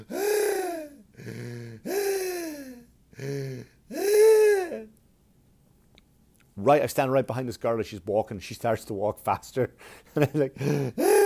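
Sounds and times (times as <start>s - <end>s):
person imitating pained gasping inhales of freezing cold air: 0.0s - 5.0s, 9.8s - 11.2s
speech: 6.6s - 11.2s.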